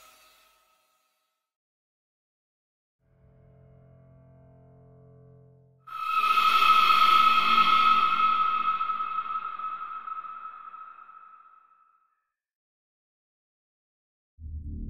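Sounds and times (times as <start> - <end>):
cinematic sound effects: 5.9 - 11.7.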